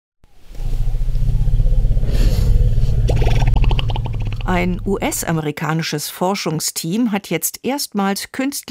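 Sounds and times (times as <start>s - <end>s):
wild African elephants greeting with deep throaty rumbles: 0.3s - 5.4s
speech: 4.5s - 8.6s.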